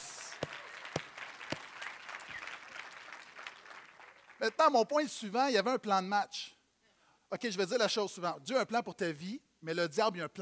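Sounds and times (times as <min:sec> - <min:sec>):
audience applause: 0:00.0 - 0:04.6
speech: 0:04.4 - 0:06.6, 0:07.3 - 0:10.4.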